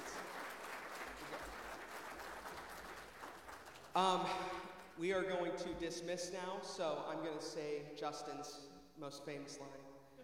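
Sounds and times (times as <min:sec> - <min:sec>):
audience applause: 0:00.0 - 0:04.6
speech: 0:04.0 - 0:09.9.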